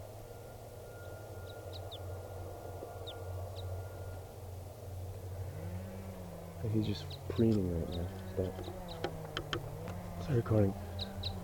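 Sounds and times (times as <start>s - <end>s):
low rumble of traffic or engine noise: 0.0s - 11.4s
type 2 crossbill kip calls: 6.2s - 11.4s
speech: 6.6s - 9.2s, 10.3s - 11.1s.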